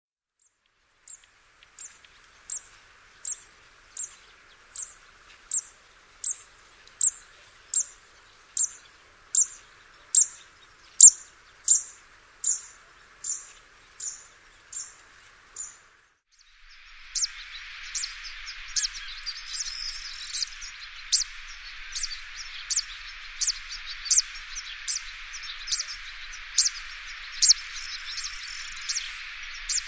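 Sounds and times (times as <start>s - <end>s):
hiss: 0.5s - 29.8s
bird high chirps: 4.8s - 8.0s, 8.6s - 15.0s, 15.6s - 15.8s, 16.4s - 29.8s.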